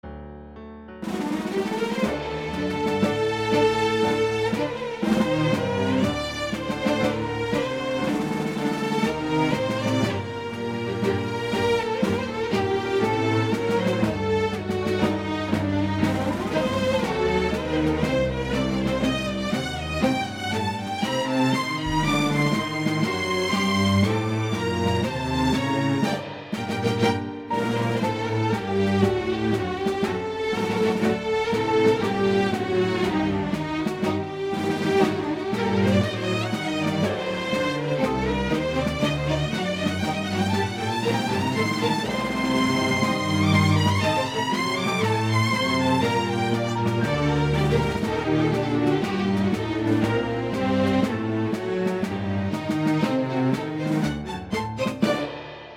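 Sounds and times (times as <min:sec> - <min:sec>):
strings: 0:01.0 - 0:55.7.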